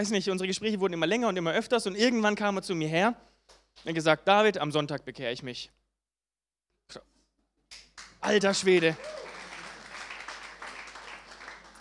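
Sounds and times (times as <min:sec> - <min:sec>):
speech: 0:00.0 - 0:05.8, 0:06.9 - 0:07.1, 0:07.7 - 0:09.2
audience clapping: 0:07.7 - 0:11.7.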